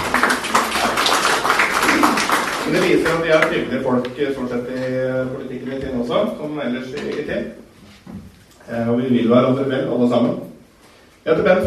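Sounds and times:
audience applause: 0.0s - 3.5s
speech: 2.7s - 10.5s, 11.2s - 11.6s.

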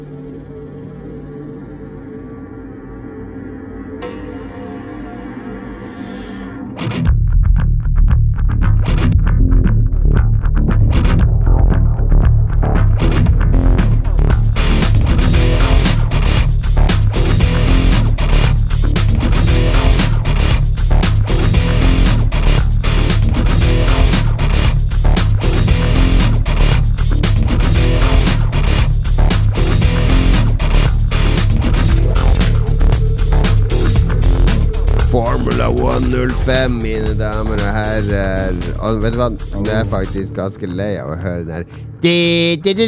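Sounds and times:
funky rock video game soundtrack music: 6.7s - 40.8s
speech: 36.2s - 42.8s.

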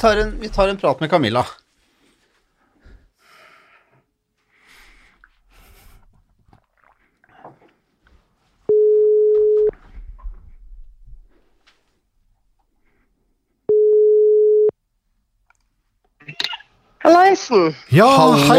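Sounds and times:
speech: 0.0s - 1.6s, 17.0s - 18.5s
telephone ringing tones on the line as a call connects: 8.7s - 9.8s, 13.7s - 14.7s.

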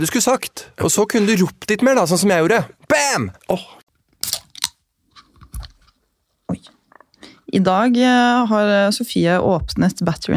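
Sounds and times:
speech: 0.0s - 4.4s, 7.5s - 10.3s
Red Bull energy drink can cracking open: 4.1s - 5.8s.

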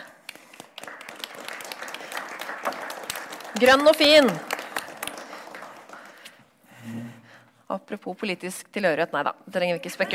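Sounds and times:
audience applause: 0.3s - 6.4s
speech: 3.6s - 4.5s, 7.7s - 10.1s.

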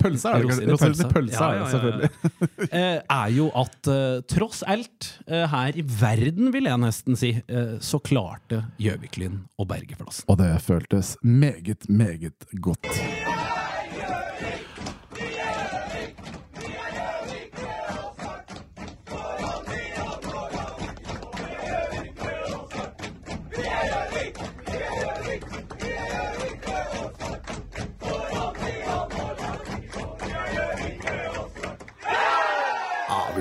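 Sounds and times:
laughter: 0.0s - 3.5s, 12.8s - 14.9s, 33.1s - 33.3s
speech: 0.0s - 13.3s
young men cheering and chanting after a match: 12.8s - 18.5s, 19.1s - 27.4s, 28.0s - 33.3s
hands clapping: 12.9s - 32.3s.

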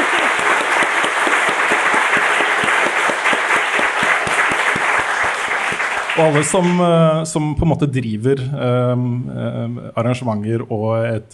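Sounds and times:
live audience applause: 0.0s - 6.8s
speech: 6.2s - 11.3s.

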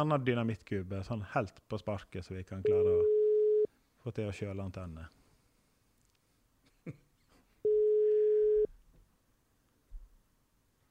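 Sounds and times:
speech: 0.0s - 3.1s, 4.0s - 5.2s, 6.8s - 7.0s
faint noise: 0.0s - 10.8s
unanswered telephone call ringing tone during a prank call: 2.7s - 3.7s, 7.7s - 8.7s.

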